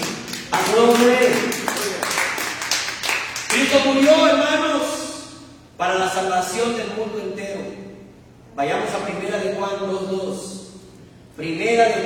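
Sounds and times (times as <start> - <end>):
applause: 0.0 - 4.2
speech: 0.7 - 1.5, 3.7 - 4.9, 5.8 - 7.9, 8.6 - 10.6, 11.4 - 12.0.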